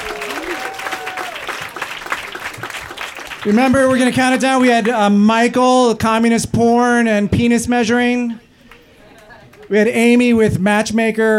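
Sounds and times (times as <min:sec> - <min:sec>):
audience applause: 0:00.0 - 0:05.0
speech: 0:03.4 - 0:08.4, 0:09.7 - 0:11.3.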